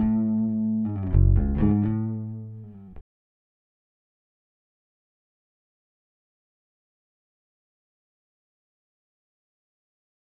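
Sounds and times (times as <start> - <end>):
big bass: 0.0 - 3.0.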